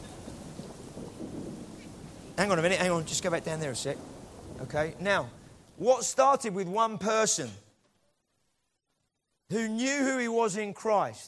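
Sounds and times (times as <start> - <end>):
big thunder clap: 0.0 - 6.4
speech: 2.4 - 7.6, 9.5 - 11.2.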